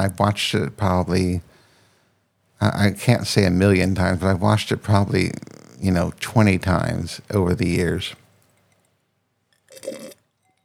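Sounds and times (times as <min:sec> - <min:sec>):
speech: 0:00.0 - 0:01.5, 0:02.6 - 0:08.2, 0:09.8 - 0:10.1
faint mouth sounds: 0:00.0 - 0:01.6, 0:02.6 - 0:08.3
slurping sip of Chardonnay wine: 0:04.8 - 0:08.1, 0:09.7 - 0:10.2.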